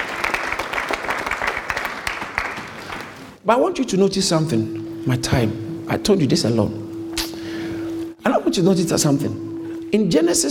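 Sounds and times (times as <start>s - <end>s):
audience applause: 0.0s - 3.4s
speech: 3.4s - 6.8s, 8.5s - 10.4s.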